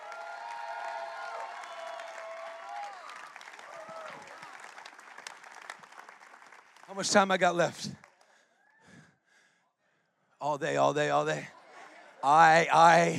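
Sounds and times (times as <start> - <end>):
audience clapping: 0.0 - 8.4
speech: 6.9 - 8.0, 10.4 - 11.6, 12.2 - 13.1.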